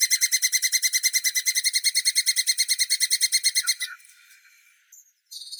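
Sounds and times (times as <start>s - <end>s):
Sciurus vulgaris red squirrel: 0.0s - 4.0s.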